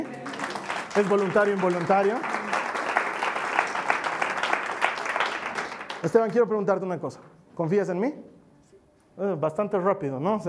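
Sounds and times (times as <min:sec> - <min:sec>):
audience applause: 0:00.0 - 0:06.4
speech: 0:01.0 - 0:02.4, 0:06.0 - 0:08.3, 0:09.2 - 0:10.4.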